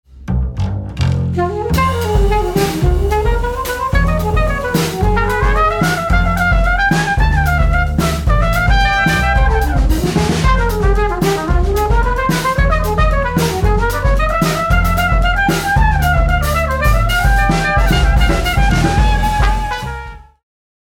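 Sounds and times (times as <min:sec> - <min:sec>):
quartet playing: 0:01.4 - 0:20.3.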